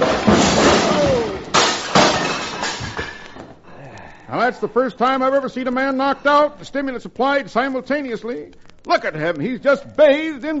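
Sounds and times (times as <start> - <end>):
glass bottles smashing behind a bar: 0.0 - 3.4
glass fragments tinkling: 0.0 - 3.4
speech: 4.5 - 10.5.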